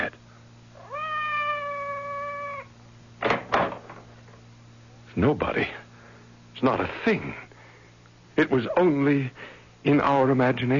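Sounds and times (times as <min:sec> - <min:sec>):
cat meowing outside a door: 0:00.8 - 0:02.7
speech: 0:05.2 - 0:05.8, 0:06.6 - 0:07.4, 0:08.4 - 0:10.7.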